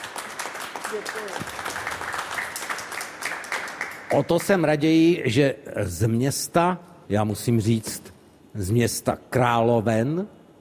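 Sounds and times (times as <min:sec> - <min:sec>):
audience applause at an event honouring a gliding medal winner: 0:00.0 - 0:04.5
speech: 0:00.9 - 0:02.1, 0:04.1 - 0:10.4.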